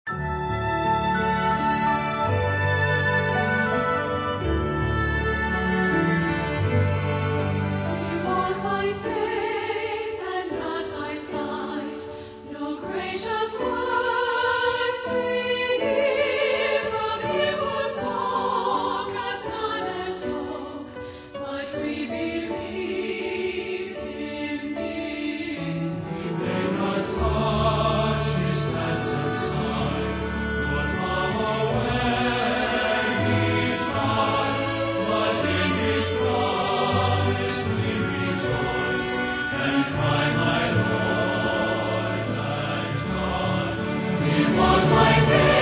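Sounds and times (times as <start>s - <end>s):
orchestra playing: 0.1s - 9.8s, 25.9s - 45.5s
singers: 8.0s - 45.5s.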